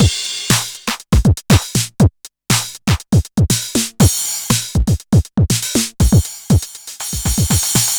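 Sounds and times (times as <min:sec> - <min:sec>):
909 drum machine hit: 0:00.0 - 0:07.9.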